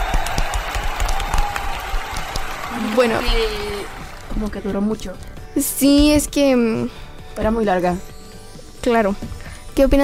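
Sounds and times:
listeners applauding after a story is read aloud: 0:00.0 - 0:04.5
speech: 0:03.0 - 0:03.7, 0:04.4 - 0:08.1, 0:08.8 - 0:10.0.

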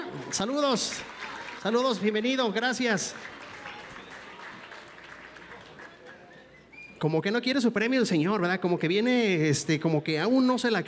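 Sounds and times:
audience applause: 0:00.0 - 0:06.5
speech: 0:00.3 - 0:03.4, 0:07.0 - 0:10.8.

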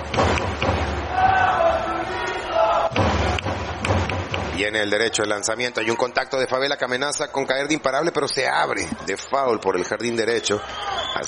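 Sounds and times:
baseball crowd cheering for batter Jesús Favela: 0:00.0 - 0:06.2, 0:08.6 - 0:11.2
speech: 0:04.6 - 0:11.2.

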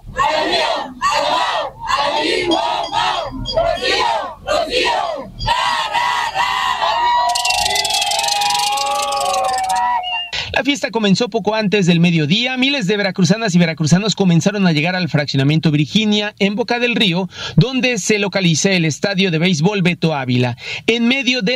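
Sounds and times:
crowd chanting at rally: 0:00.0 - 0:10.2
speech: 0:10.8 - 0:21.5.

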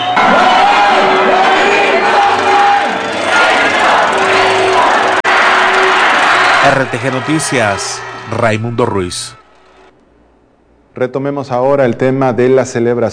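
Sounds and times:
large crowd in downtown Acapulco cheering Mexico's World Cup match: 0:00.0 - 0:09.9
speech: 0:06.7 - 0:09.4, 0:11.0 - 0:13.1.

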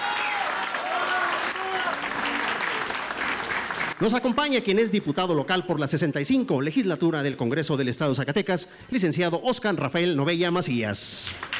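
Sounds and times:
audience applause: 0:00.0 - 0:04.1, 0:11.4 - 0:11.5
speech: 0:04.0 - 0:11.5.

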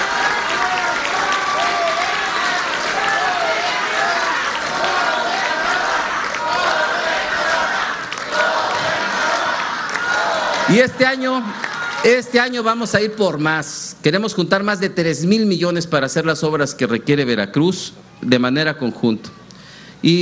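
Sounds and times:
murmur of crowd voices: 0:00.0 - 0:10.8
large audience applause: 0:00.0 - 0:12.2
cheers: 0:00.0 - 0:12.3
speech: 0:10.7 - 0:19.4, 0:20.0 - 0:20.2.

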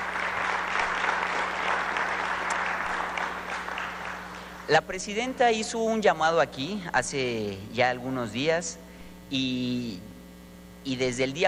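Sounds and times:
audience applause: 0:00.0 - 0:04.7
speech: 0:04.7 - 0:10.1, 0:10.8 - 0:11.4.

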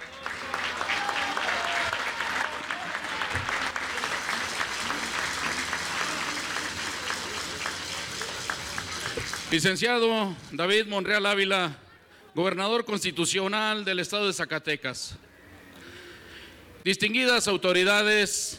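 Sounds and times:
crowd applause: 0:00.0 - 0:09.8
speech: 0:09.5 - 0:11.8, 0:12.4 - 0:15.2, 0:16.8 - 0:18.5.

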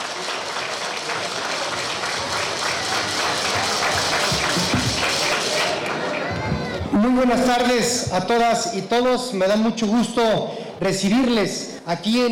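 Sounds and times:
crowd applause: 0:00.0 - 0:07.1
speech: 0:07.0 - 0:12.3.

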